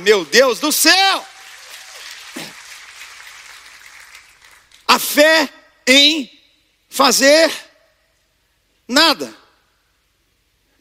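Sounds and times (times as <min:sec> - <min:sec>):
speech: 0:00.0 - 0:01.3, 0:05.0 - 0:07.6, 0:08.9 - 0:09.4
audience applauding: 0:00.0 - 0:05.0.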